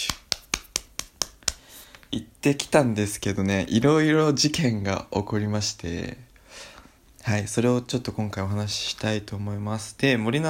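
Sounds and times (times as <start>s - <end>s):
hands clapping in applause: 0.0s - 2.8s
speech: 2.1s - 10.4s.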